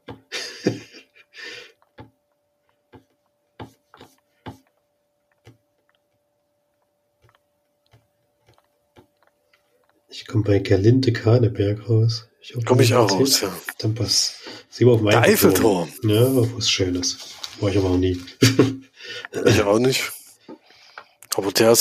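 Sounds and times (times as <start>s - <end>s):
laughter: 0.3s - 1.3s, 18.3s - 18.8s
speech: 10.3s - 20.2s, 21.4s - 21.7s
turning a page of paper: 15.2s - 18.4s.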